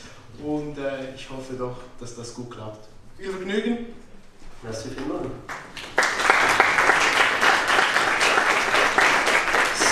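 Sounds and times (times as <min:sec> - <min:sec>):
speech: 0:00.4 - 0:04.0, 0:04.6 - 0:05.6
crowd applause: 0:05.5 - 0:09.8.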